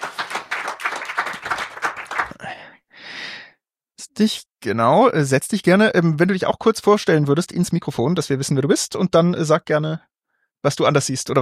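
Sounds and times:
audience applause: 0:00.0 - 0:02.4
speech: 0:04.2 - 0:11.4.

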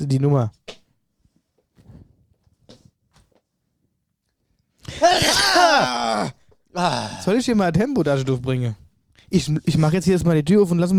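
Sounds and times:
speech: 0:00.0 - 0:00.6, 0:05.0 - 0:10.9
person sneezing: 0:04.9 - 0:07.3.

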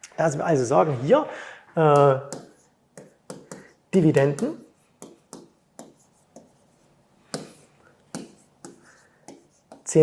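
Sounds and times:
speech: 0:00.1 - 0:02.4, 0:03.9 - 0:04.6
pen handwriting on paper: 0:04.6 - 0:09.9.

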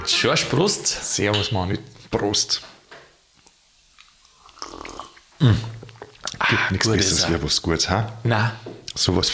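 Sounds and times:
speech: 0:00.2 - 0:02.8, 0:05.4 - 0:05.8, 0:06.5 - 0:09.3
chewing food: 0:03.4 - 0:06.5
low voiced satisfied murmur or grunt: 0:05.4 - 0:05.8.

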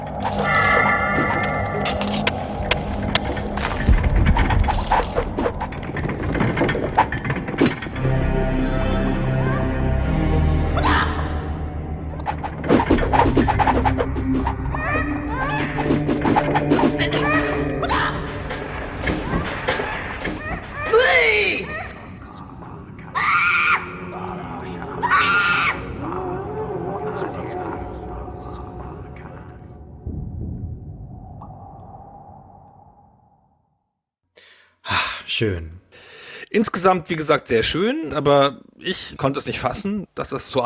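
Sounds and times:
video game dungeon clattering effects: 0:00.0 - 0:09.1, 0:12.0 - 0:21.0
video game dungeon rumbling effects: 0:00.0 - 0:21.0, 0:23.8 - 0:34.0
creature-like cries: 0:00.3 - 0:01.8, 0:10.8 - 0:11.4, 0:14.6 - 0:29.4
shrill rising and falling wails: 0:10.6 - 0:11.6, 0:14.6 - 0:22.3, 0:23.0 - 0:28.3
speech: 0:35.4 - 0:35.7, 0:36.6 - 0:40.6.

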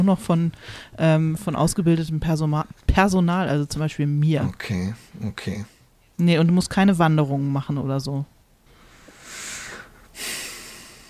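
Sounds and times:
speech: 0:00.0 - 0:08.3
heavy snorting breath of relief: 0:08.8 - 0:11.0.

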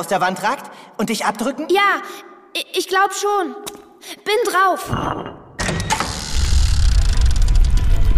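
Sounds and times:
speech: 0:00.0 - 0:05.4
stone secret door opening in well wall: 0:05.2 - 0:08.0.

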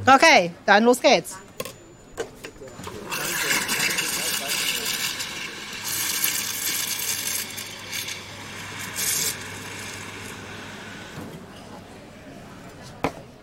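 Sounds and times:
speech: 0:00.0 - 0:01.4
espresso machine steam wand heating oat milk: 0:03.1 - 0:11.3.

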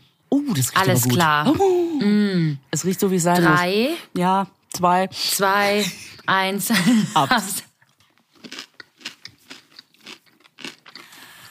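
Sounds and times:
speech: 0:00.4 - 0:07.7
chewing a white chocolate sweet with a dark centre: 0:07.8 - 0:11.3.

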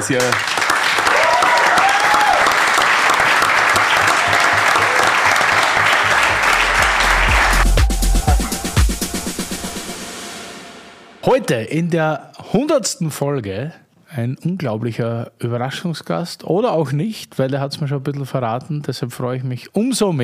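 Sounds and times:
speech: 0:00.0 - 0:00.6, 0:11.2 - 0:20.2
group applause: 0:00.0 - 0:09.8
short musical sting: 0:06.3 - 0:11.2.

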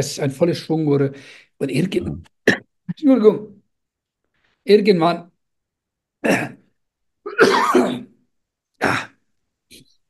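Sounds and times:
speech: 0:00.0 - 0:03.6, 0:04.6 - 0:05.3, 0:06.2 - 0:06.6
whooping cough coughing: 0:02.0 - 0:02.9, 0:06.2 - 0:08.2, 0:08.8 - 0:09.3.

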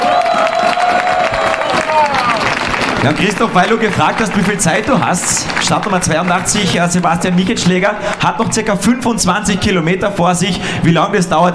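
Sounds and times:
crowd in Weitra cheering and whooping for a cycling race winner: 0:00.0 - 0:05.2
crowd in Weitra applauding a cycling race winner at Race Around Niederösterreich: 0:00.0 - 0:08.5
speech: 0:03.0 - 0:11.5.

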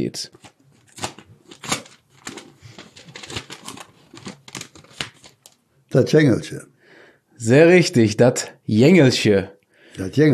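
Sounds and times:
speech: 0:00.0 - 0:00.5, 0:06.0 - 0:06.7, 0:07.4 - 0:10.3
paper slip rustling as it is pulled out of a small envelope: 0:00.3 - 0:05.6.

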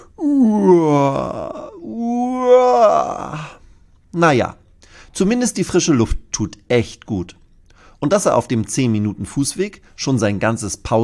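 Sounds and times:
person yawning: 0:00.0 - 0:03.6
speech: 0:04.2 - 0:04.6, 0:05.2 - 0:07.4, 0:08.0 - 0:11.0.

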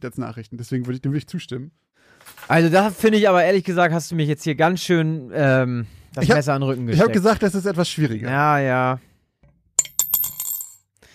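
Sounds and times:
speech: 0:00.0 - 0:09.1
euro coin dropped into a mug: 0:09.8 - 0:10.8.

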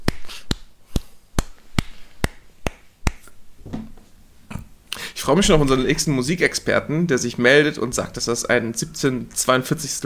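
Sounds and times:
hand claps in four-four time: 0:00.0 - 0:03.3
thump: 0:03.6 - 0:04.1
speech: 0:05.3 - 0:10.0.

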